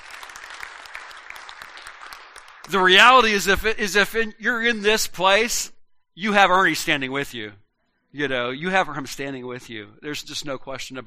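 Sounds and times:
audience clapping: 0.0s - 3.4s
speech: 2.7s - 11.0s.

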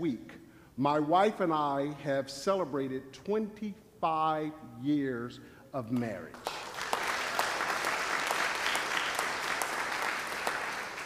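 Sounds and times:
speech: 0.0s - 6.6s
audience applause: 6.4s - 11.0s.

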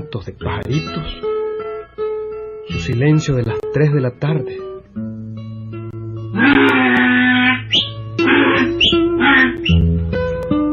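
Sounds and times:
speech: 0.1s - 1.4s, 2.7s - 4.7s
donkey braying: 6.3s - 9.9s.

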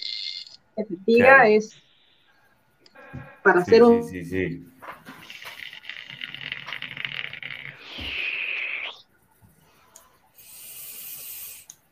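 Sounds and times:
speech: 0.8s - 1.8s, 3.1s - 4.7s
steam blasting out in a sustained hiss: 10.4s - 11.7s.

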